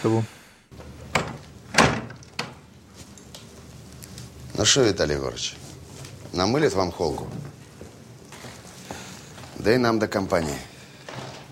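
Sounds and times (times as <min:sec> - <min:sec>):
speech: 0:00.0 - 0:00.4, 0:04.6 - 0:05.6, 0:06.3 - 0:07.6, 0:09.6 - 0:10.7
door being shut firmly: 0:00.7 - 0:02.7, 0:11.0 - 0:11.5.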